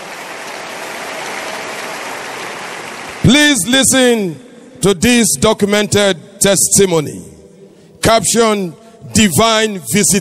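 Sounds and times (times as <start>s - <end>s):
audience clapping: 0.0s - 4.0s
speech: 3.4s - 7.4s, 8.0s - 10.2s.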